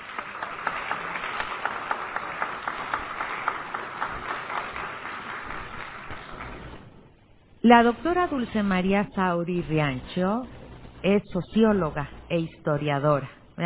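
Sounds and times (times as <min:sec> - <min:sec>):
audience applause: 0:00.0 - 0:07.0
speech: 0:07.6 - 0:13.6.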